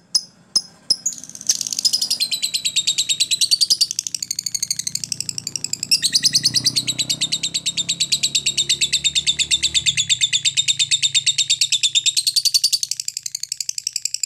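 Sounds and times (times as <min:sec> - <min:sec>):
lovebird chirping: 0:00.0 - 0:14.2.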